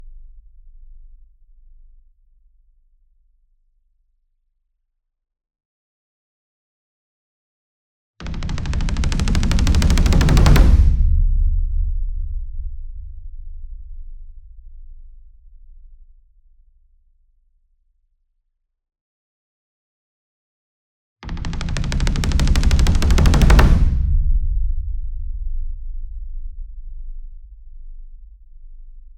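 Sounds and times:
60 inch taiko drum roll with hard beater: 0:08.2 - 0:12.8, 0:21.3 - 0:25.3.

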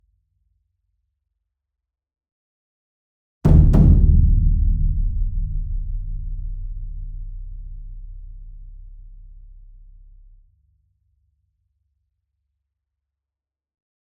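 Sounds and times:
taiko drum: 0:03.5 - 0:09.0
concert bass drum: 0:03.5 - 0:10.3.

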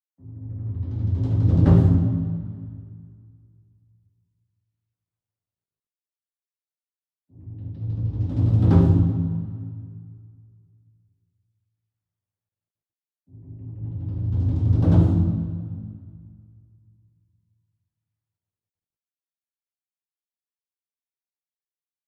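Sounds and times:
28 inch taiko drum roll with soft beater, far: 0:00.4 - 0:03.0, 0:07.4 - 0:10.0, 0:13.4 - 0:16.3.

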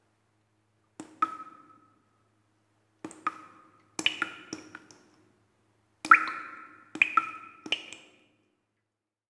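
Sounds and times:
water drops in a cave: 0:01.0 - 0:02.0, 0:03.0 - 0:05.2, 0:06.0 - 0:08.5.

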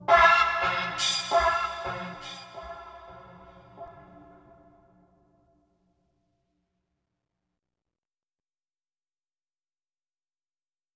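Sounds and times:
mysterious string music: 0:00.0 - 0:04.7.

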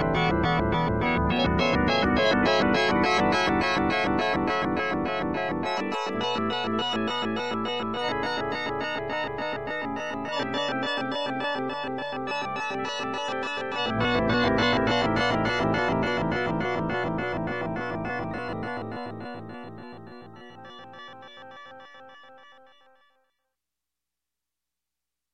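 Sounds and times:
mysterious space-themed electronic music: 0:00.0 - 0:20.8.

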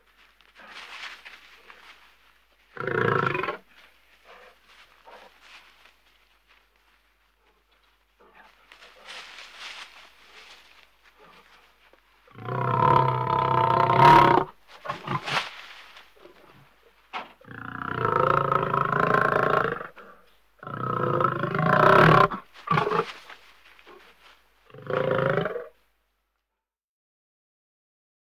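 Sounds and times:
lion growling: 0:02.7 - 0:05.4, 0:12.3 - 0:15.5, 0:17.4 - 0:23.3, 0:24.7 - 0:25.7.

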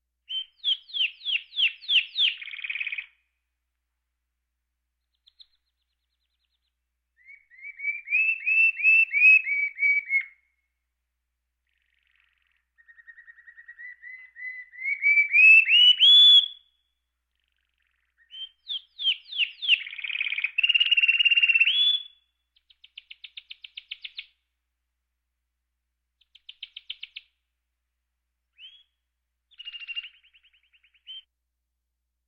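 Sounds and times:
birds: 0:00.3 - 0:03.4, 0:05.0 - 0:10.7, 0:11.6 - 0:24.5, 0:26.2 - 0:27.4, 0:28.5 - 0:31.3.

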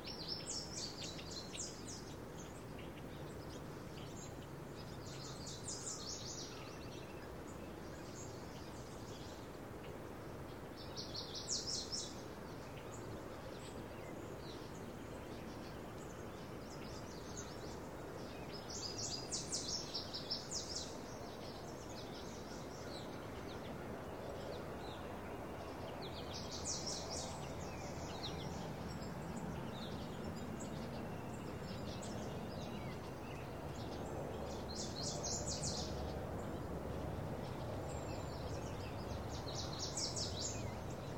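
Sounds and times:
birds in early morning country ambience: 0:00.0 - 0:41.1.

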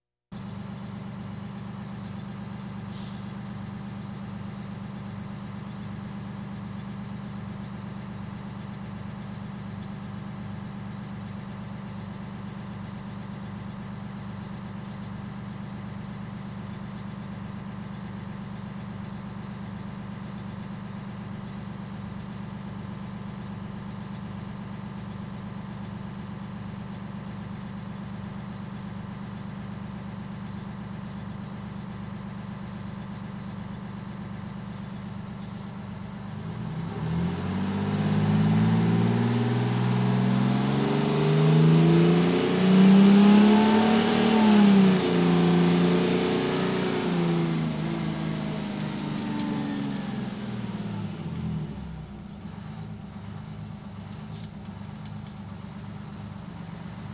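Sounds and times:
fire engine sirens: 0:36.4 - 0:52.1.

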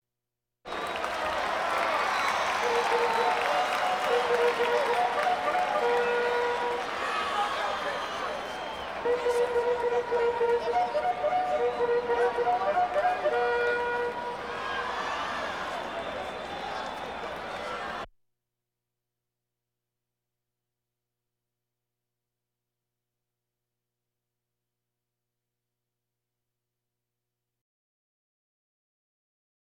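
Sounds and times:
crowds: 0:00.7 - 0:18.1.

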